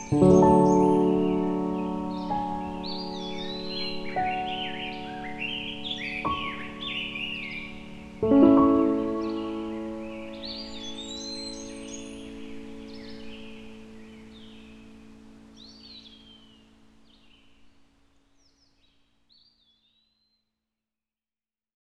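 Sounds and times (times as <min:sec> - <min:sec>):
piano: 0:00.0 - 0:16.6
bird song: 0:00.0 - 0:20.5.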